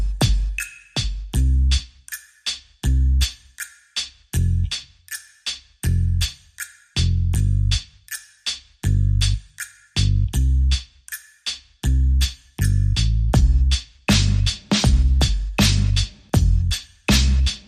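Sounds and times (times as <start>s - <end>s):
bass: 0.0s - 2.0s, 2.8s - 3.5s, 4.3s - 5.0s, 5.8s - 8.2s, 8.8s - 11.0s, 11.8s - 17.6s
drums: 0.0s - 17.6s.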